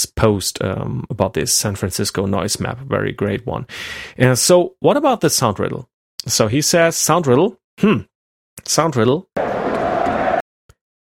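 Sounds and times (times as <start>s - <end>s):
speech: 0.2s - 9.4s
football fans cheering in a stadium: 9.4s - 10.4s.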